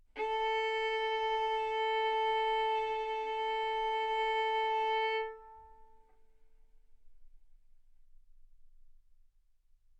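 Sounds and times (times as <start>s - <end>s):
violin arco on A string: 0.1s - 6.1s.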